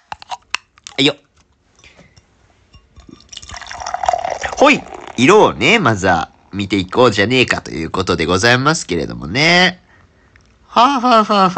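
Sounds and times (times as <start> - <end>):
speech: 1.0 - 1.2, 4.6 - 9.8, 10.8 - 11.5
winter limited-edition alcohol pouring into mug: 2.8 - 7.2.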